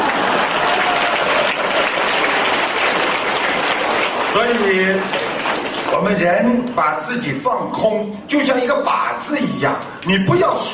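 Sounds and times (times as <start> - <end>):
audience applause: 0.0 - 6.2
speech: 4.5 - 5.2, 5.9 - 10.7.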